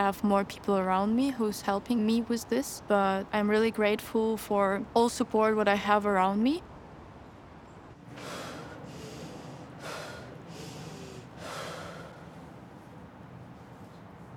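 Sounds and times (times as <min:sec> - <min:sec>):
speech: 0:00.0 - 0:06.7
exhale: 0:08.1 - 0:12.5
deep inhale: 0:08.1 - 0:12.6.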